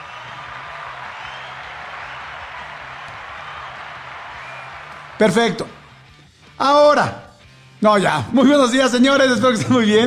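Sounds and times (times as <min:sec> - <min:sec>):
applause: 0:00.0 - 0:05.8
speech: 0:05.2 - 0:05.8, 0:06.6 - 0:07.2, 0:07.8 - 0:10.0.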